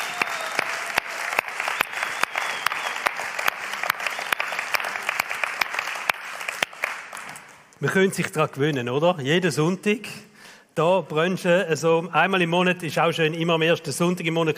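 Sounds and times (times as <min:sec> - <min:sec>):
audience applause: 0:00.0 - 0:07.6
speech: 0:07.8 - 0:14.5.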